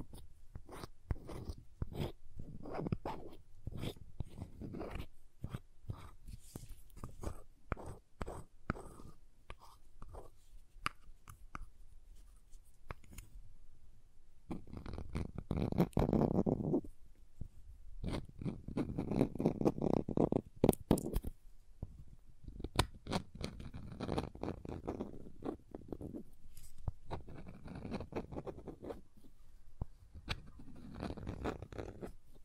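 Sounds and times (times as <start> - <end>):
crayons tapping, scraping and carving: 0.0 - 11.7, 14.5 - 32.4.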